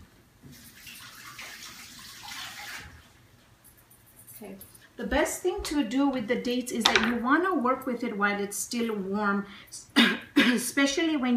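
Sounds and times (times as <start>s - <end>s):
water running from a tap while washing hands: 0.5s - 3.2s
speech: 4.4s - 11.3s.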